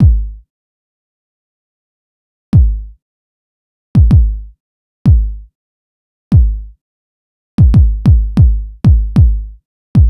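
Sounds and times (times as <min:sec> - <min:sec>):
kick drum: 0:00.0 - 0:00.4, 0:02.6 - 0:03.0, 0:04.0 - 0:04.5, 0:05.1 - 0:05.4, 0:06.3 - 0:06.7, 0:07.6 - 0:10.0.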